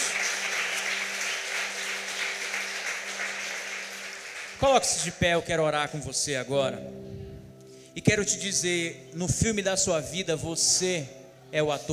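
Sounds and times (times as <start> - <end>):
audience applauding loudly: 0.0 - 5.1
speech: 4.6 - 7.2, 8.0 - 11.9.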